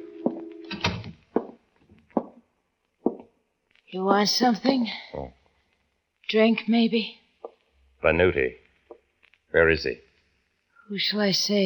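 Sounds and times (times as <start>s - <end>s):
heavy footsteps: 0.2s - 2.4s, 3.0s - 3.3s
door latch clicking and door opening with a creak: 0.7s - 1.5s
speech: 3.9s - 5.4s, 6.3s - 7.2s, 8.0s - 8.6s, 9.5s - 10.0s, 10.9s - 11.6s.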